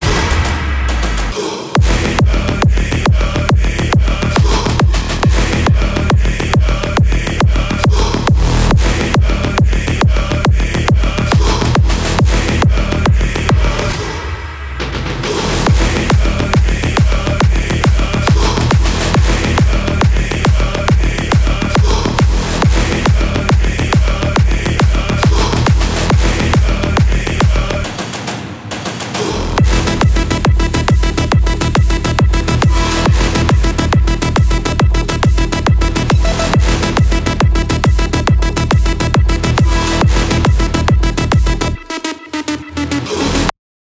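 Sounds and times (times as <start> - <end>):
mastered psytrance drop: 0.0 - 43.5.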